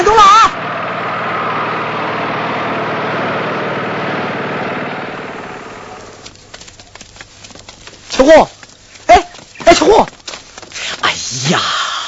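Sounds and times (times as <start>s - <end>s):
vehicle engine running as it drives off: 0.0s - 12.0s
speech: 8.3s - 8.5s, 11.5s - 11.7s.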